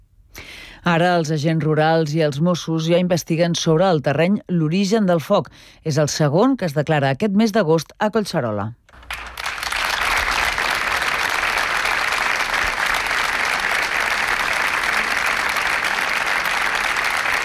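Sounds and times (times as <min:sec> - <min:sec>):
speech: 0:00.8 - 0:08.8
applause breaking a minute of silence: 0:08.9 - 0:17.4.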